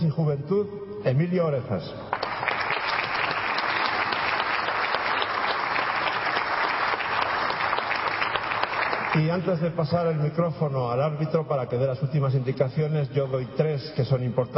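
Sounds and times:
speech: 0.2 - 2.2, 9.2 - 14.5
audience applause: 2.1 - 9.5.

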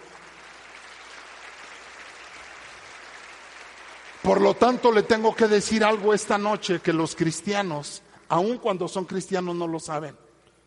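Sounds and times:
audience applause: 0.0 - 6.6
speech: 4.2 - 10.2.

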